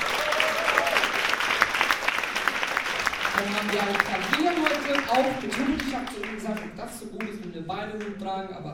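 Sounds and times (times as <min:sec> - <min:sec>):
audience applause: 0:00.0 - 0:06.7
speech: 0:03.4 - 0:08.7.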